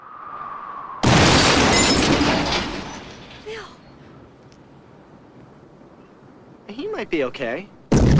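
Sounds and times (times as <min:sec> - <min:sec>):
car crashing: 0:01.0 - 0:03.6
speech: 0:06.7 - 0:07.8.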